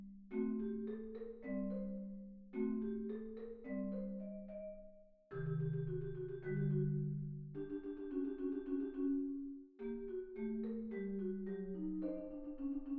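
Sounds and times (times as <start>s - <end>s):
solo MIDI marimba: 0.0s - 12.9s.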